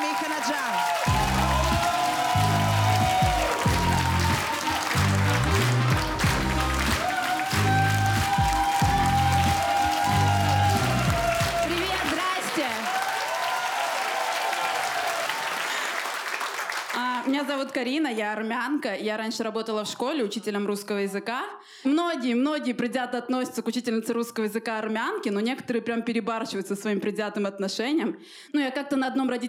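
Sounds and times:
upbeat music: 0:00.0 - 0:12.8
audience applause: 0:00.0 - 0:17.6
speech: 0:17.8 - 0:29.4.

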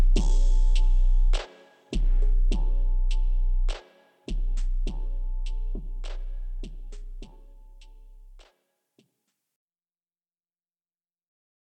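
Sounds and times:
31-35 Hz bass tone: 0:00.0 - 0:01.4, 0:02.0 - 0:08.4.

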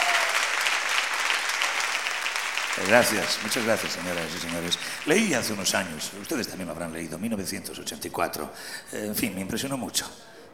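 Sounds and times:
concert audience applause: 0:00.0 - 0:07.0
speech: 0:02.8 - 0:10.4.

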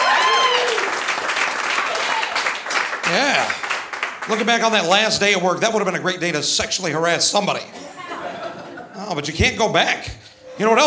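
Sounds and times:
scattered cheers: 0:00.0 - 0:02.6
comedy show audience clapping: 0:00.0 - 0:05.4
speech: 0:03.1 - 0:03.6, 0:04.3 - 0:07.8, 0:09.1 - 0:10.8
laughter: 0:07.7 - 0:09.4.

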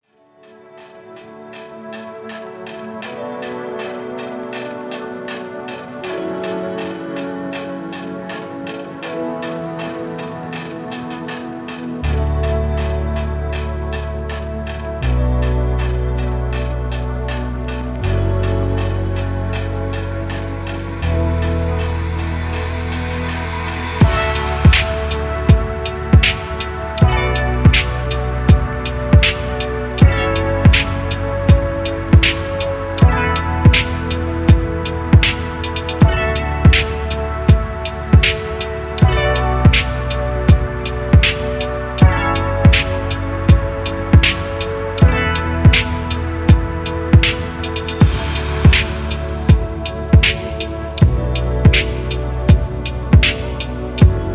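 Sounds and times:
cool ambience: 0:00.7 - 0:54.3.

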